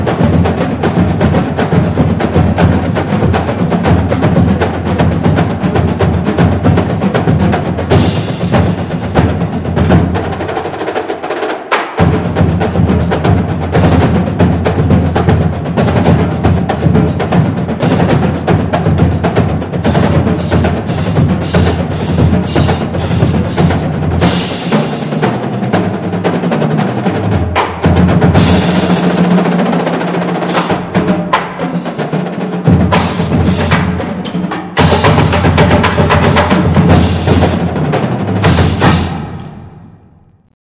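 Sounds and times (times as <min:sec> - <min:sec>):
drum corps drum line playing: 0:00.0 - 0:40.5.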